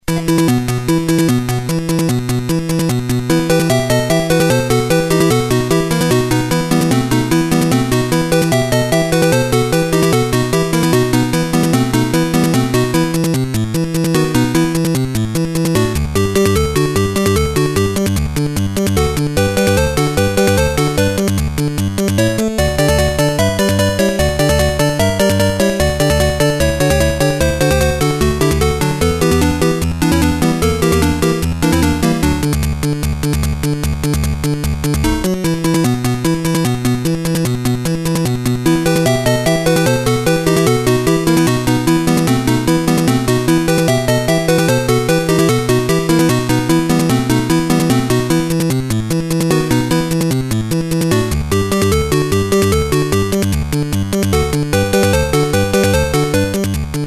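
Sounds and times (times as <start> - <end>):
music: 0.0 - 57.0.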